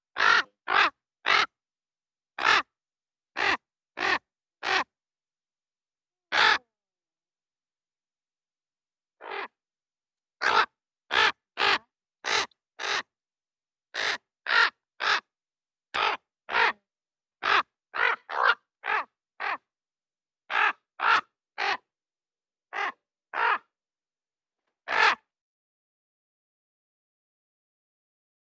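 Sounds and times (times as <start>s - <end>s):
raven calling: 0.2s - 1.5s, 2.4s - 2.7s, 6.3s - 6.6s, 9.2s - 9.6s, 10.4s - 13.1s, 14.0s - 15.3s, 16.0s - 16.8s, 17.4s - 19.7s, 20.5s - 21.9s, 22.7s - 23.7s, 24.9s - 25.2s.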